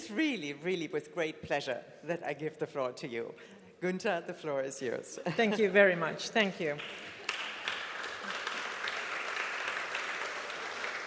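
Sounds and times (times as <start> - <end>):
speech: 0.1 - 7.2
audience applause: 6.8 - 11.0.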